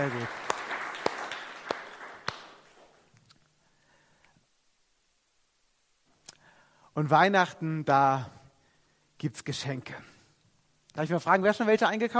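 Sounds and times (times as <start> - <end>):
speech: 0.0 - 0.4, 7.0 - 8.4, 9.2 - 10.1, 11.0 - 12.1
audience applause: 0.0 - 3.0.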